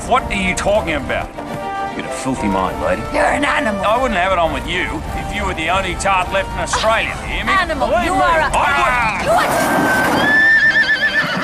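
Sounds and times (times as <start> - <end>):
speech: 0.1 - 10.4
horse neighing: 8.6 - 11.4.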